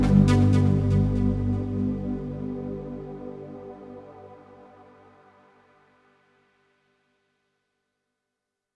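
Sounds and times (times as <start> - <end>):
Korg Radias-R synthesizer with BPF Plus filter: 0.0 - 6.8.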